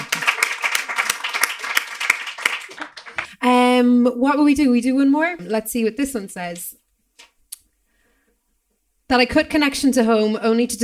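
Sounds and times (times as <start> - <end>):
audience applause: 0.0 - 3.4
speech: 3.4 - 6.8, 9.1 - 10.8.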